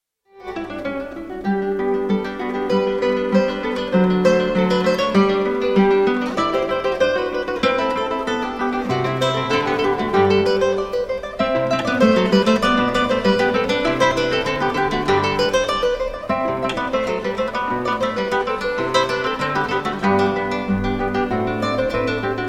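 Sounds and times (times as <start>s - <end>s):
guitar duo playing in G major: 0.3s - 22.4s.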